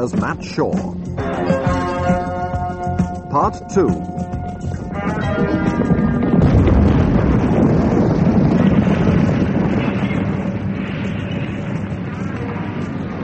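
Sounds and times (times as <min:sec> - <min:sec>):
speech: 0:00.0 - 0:02.2, 0:03.3 - 0:04.3
fire rumbling and crackling: 0:01.0 - 0:13.2
aeroplane exploding into ball of fire: 0:04.8 - 0:13.2.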